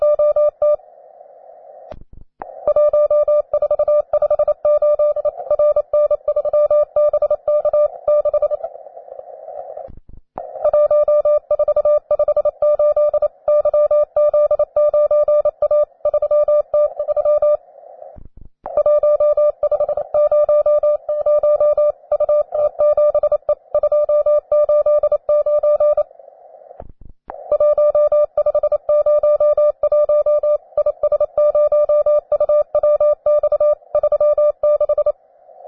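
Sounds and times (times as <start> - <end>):
beginner training CW morse code tones: 2.6 - 8.7, 10.5 - 17.6, 18.7 - 26.1, 27.3 - 35.2.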